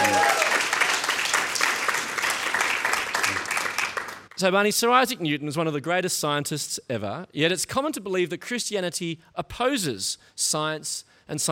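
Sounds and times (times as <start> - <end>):
audience applause: 0.0 - 4.3
speech: 4.4 - 11.5.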